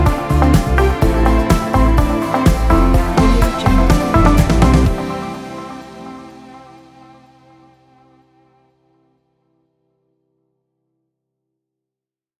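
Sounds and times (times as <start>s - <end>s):
uplifting inspirational corporate background music: 0.0s - 8.4s.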